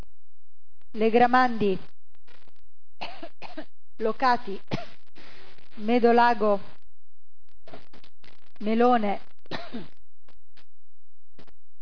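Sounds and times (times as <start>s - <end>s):
speech: 0.9s - 1.9s, 4.0s - 4.9s, 5.8s - 6.7s, 8.6s - 10.0s
harsh cough with rough throat clearing: 3.0s - 3.6s, 9.5s - 9.9s.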